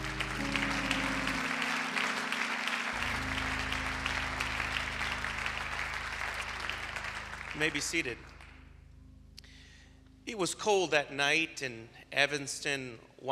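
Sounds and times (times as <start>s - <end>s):
audience clapping: 0.0s - 8.7s
speech: 7.6s - 8.3s, 10.3s - 13.3s.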